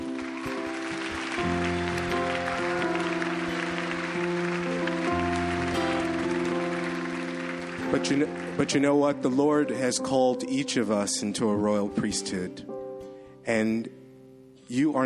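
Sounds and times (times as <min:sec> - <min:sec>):
audience applause: 0:00.0 - 0:09.2
sustained organ-like chords: 0:00.0 - 0:15.0
speech: 0:07.9 - 0:12.8, 0:13.5 - 0:14.0, 0:14.7 - 0:15.0.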